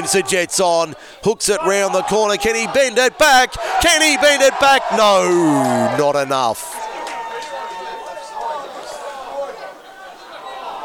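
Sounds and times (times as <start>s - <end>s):
speech: 0.0s - 6.7s
large stadium crowd roaring and cheering: 1.5s - 10.8s.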